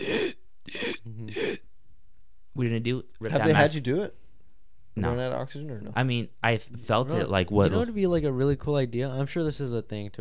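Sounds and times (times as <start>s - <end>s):
person imitating gasping for air: 0.0s - 1.6s
speech: 2.6s - 4.2s, 5.0s - 10.1s.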